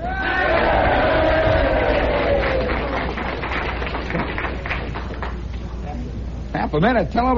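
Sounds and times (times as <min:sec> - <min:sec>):
rising shouts and whoops: 0:00.0 - 0:03.1
large crowd cheering: 0:00.0 - 0:05.4
speech: 0:06.8 - 0:07.3.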